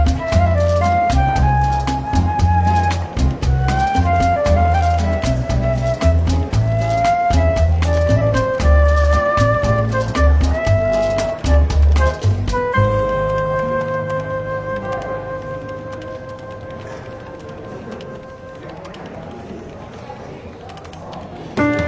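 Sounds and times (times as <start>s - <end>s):
soft relaxed jazz in a London bookshop café: 0.0s - 18.8s
walking bass: 0.0s - 18.9s.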